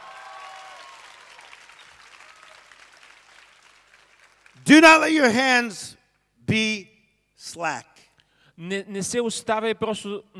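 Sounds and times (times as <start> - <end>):
audience clapping hands: 0.0 - 5.3
speech: 4.6 - 8.0, 8.6 - 10.3.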